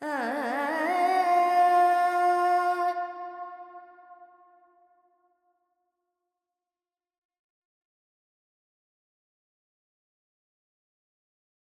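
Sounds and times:
Carnatic female vocal alaps in Dorian: 0:00.0 - 0:03.8.

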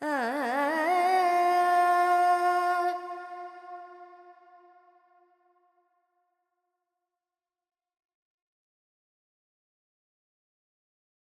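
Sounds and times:
Carnatic female vocal alaps in Dorian mode: 0:00.0 - 0:04.8.

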